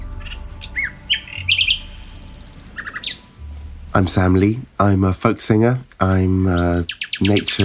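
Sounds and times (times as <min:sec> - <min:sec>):
bird singing: 0:00.0 - 0:04.5, 0:06.1 - 0:07.6
faint low rumble: 0:00.0 - 0:06.9
speech: 0:04.0 - 0:07.6.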